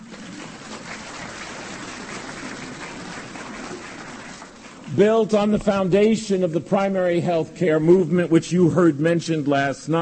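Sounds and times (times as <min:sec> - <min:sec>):
audience applause: 0:00.0 - 0:04.7
speech: 0:05.0 - 0:10.0.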